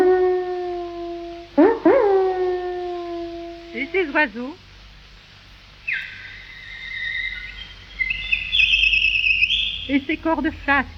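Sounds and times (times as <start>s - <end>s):
dog howling: 0.0s - 4.0s, 5.9s - 9.8s
speech: 3.9s - 4.6s, 9.9s - 10.9s.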